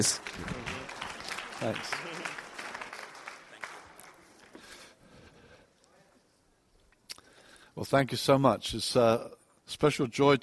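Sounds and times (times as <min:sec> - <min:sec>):
speech: 0:00.0 - 0:00.5, 0:01.6 - 0:02.1, 0:07.8 - 0:10.4
church congregation applauding to welcome a speaker: 0:00.0 - 0:05.0.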